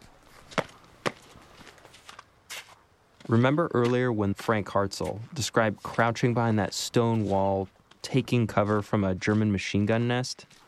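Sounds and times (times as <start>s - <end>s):
footsteps on frosty black tarmac: 0.0s - 10.6s
quiet hiss: 0.0s - 10.6s
speech: 3.3s - 10.6s.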